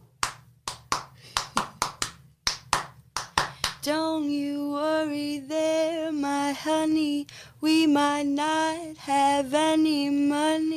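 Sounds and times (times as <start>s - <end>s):
sharp hand claps: 0.0s - 3.9s
faint low hum: 0.0s - 10.7s
speech: 3.8s - 10.7s.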